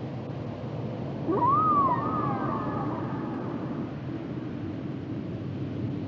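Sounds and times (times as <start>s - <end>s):
low rumbling background: 0.2s - 6.0s
whale song moan: 1.2s - 4.4s.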